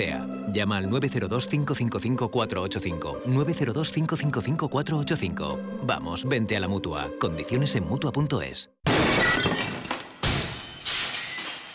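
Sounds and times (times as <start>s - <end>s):
speech: 0.0s - 9.2s
glass shattering into pieces: 8.9s - 11.7s.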